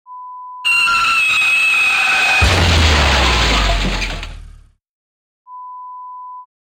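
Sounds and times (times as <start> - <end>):
car crash: 0.7 - 4.8.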